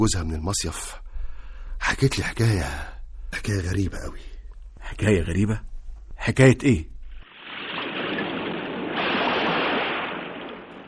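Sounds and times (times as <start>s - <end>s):
speech: 0.0s - 1.0s, 1.9s - 6.9s
high sea waves washing ashore on a beach: 7.2s - 10.8s.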